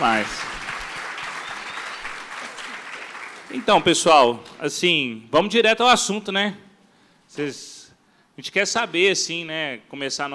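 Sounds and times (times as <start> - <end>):
speech: 0.0 - 0.6, 3.5 - 6.6, 7.3 - 7.8, 8.4 - 10.3
audience applause: 0.0 - 4.0.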